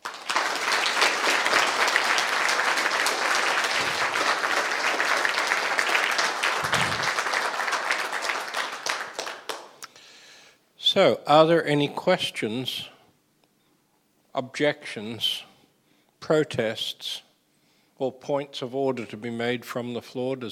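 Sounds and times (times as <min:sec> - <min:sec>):
crowd applauding: 0:00.0 - 0:09.8
speech: 0:11.0 - 0:12.9, 0:14.4 - 0:15.5, 0:16.3 - 0:17.3, 0:18.0 - 0:20.5.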